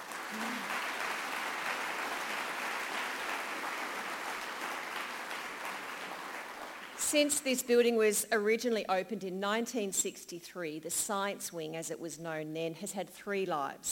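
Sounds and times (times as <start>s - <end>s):
schoolgirls clapping at a school science wing event: 0.0s - 7.0s
speech: 0.3s - 0.7s, 7.1s - 13.9s.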